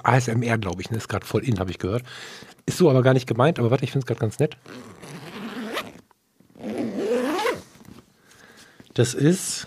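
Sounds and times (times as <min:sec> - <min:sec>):
speech: 0:00.0 - 0:05.2, 0:09.0 - 0:09.6
zipper on an Italian leather bag by The Bridge: 0:04.7 - 0:06.0, 0:06.6 - 0:08.0.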